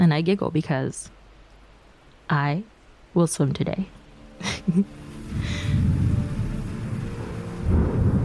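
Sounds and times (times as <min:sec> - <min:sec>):
steady rain: 0:00.0 - 0:08.2
speech: 0:00.1 - 0:01.2, 0:02.3 - 0:05.9
rumbling thunder: 0:05.3 - 0:08.2.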